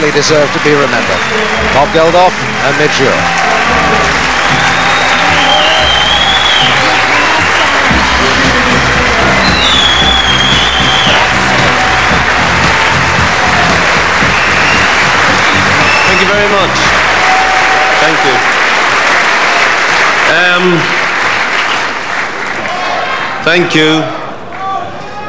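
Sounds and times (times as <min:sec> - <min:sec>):
large crowd standing ovation applause: 0:00.0 - 0:25.2
speech: 0:00.1 - 0:04.0, 0:20.6 - 0:21.0, 0:23.4 - 0:24.2
whistles: 0:04.5 - 0:08.5, 0:09.4 - 0:11.4, 0:14.2 - 0:16.6.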